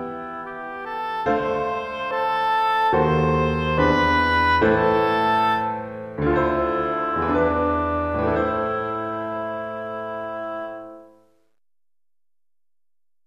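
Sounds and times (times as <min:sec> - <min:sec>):
oboe: 0:00.0 - 0:11.1
piano: 0:00.0 - 0:11.6.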